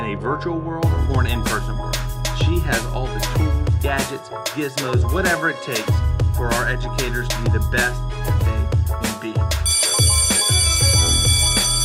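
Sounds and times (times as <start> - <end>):
speech: 0.1 - 8.6
bell ringing: 9.6 - 11.8.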